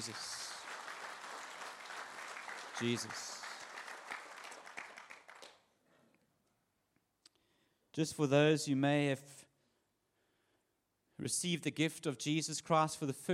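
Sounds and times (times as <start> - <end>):
speech: 0.0 - 0.4, 2.8 - 3.4, 8.0 - 9.4, 11.2 - 13.3
audience applause: 0.0 - 5.6.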